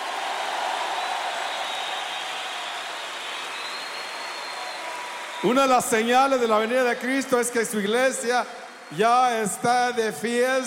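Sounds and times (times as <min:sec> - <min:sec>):
audience applause: 0:00.0 - 0:06.5
speech: 0:05.4 - 0:10.6.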